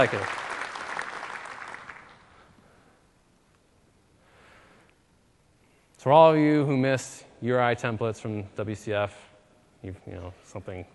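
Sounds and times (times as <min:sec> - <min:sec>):
speech: 0:00.0 - 0:00.4, 0:06.0 - 0:10.9
audience applause: 0:00.0 - 0:02.3.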